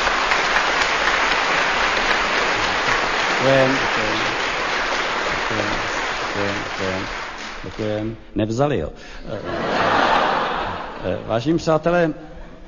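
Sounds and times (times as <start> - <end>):
large crowd applause: 0.0 - 8.2, 9.6 - 11.3
speech: 3.4 - 3.9, 6.4 - 10.2, 11.0 - 12.3
laughter: 9.3 - 11.5.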